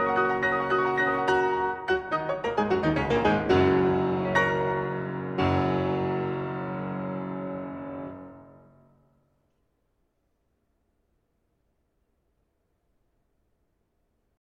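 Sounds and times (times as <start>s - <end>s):
piano: 0.0s - 9.7s.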